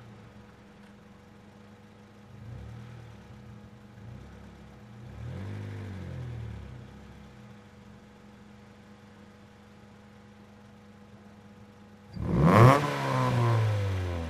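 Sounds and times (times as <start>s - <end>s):
Acura Integra engine starting: 0.0s - 9.2s, 12.1s - 14.2s.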